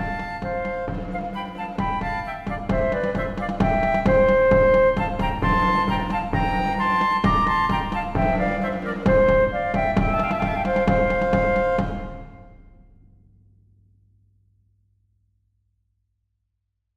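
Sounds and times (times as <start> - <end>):
march for flutes and drums: 0.0 - 12.9.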